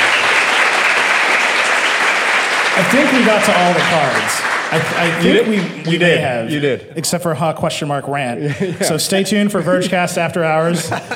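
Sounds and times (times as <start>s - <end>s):
audience applause: 0.0s - 6.4s
laughter: 2.8s - 7.3s, 8.4s - 11.1s
speech: 2.8s - 11.1s.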